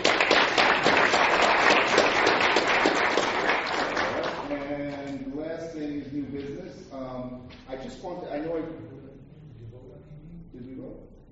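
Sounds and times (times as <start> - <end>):
crowd applauding: 0.0 - 4.6
speech: 8.0 - 11.2.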